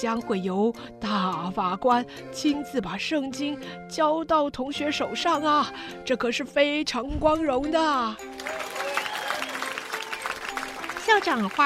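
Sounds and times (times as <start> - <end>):
speech: 0.0 - 8.8, 11.1 - 11.6
crowd thunderous applause: 8.3 - 11.6.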